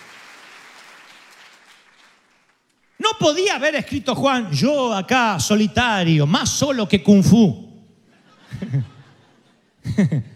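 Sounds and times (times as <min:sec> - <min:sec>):
church congregation applauding during a sermon: 0:00.0 - 0:03.5
speech: 0:03.2 - 0:07.6, 0:10.0 - 0:10.3
laughter: 0:08.0 - 0:10.3.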